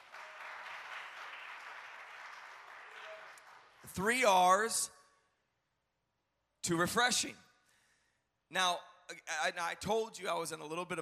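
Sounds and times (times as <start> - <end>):
audience hand clapping: 0.0 - 4.1
speech: 3.8 - 5.0, 6.6 - 7.4, 8.5 - 11.0.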